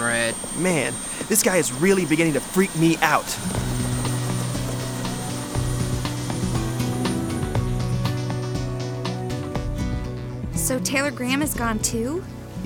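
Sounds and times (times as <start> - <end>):
helicopter engine drone and rotor chop: 0.0 - 9.6
speech: 0.3 - 3.8, 10.7 - 12.6.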